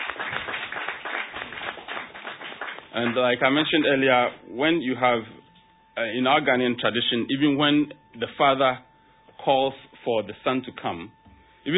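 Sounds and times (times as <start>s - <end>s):
audience clapping at a Ghanaian sponsored programme: 0.0s - 4.0s
speech: 3.0s - 5.4s, 6.0s - 11.7s.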